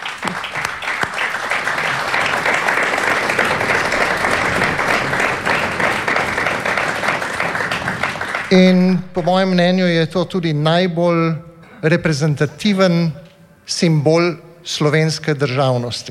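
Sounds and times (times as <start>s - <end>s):
applause for an artist whose painting is being presented: 0.0s - 10.0s
speech: 8.5s - 16.1s.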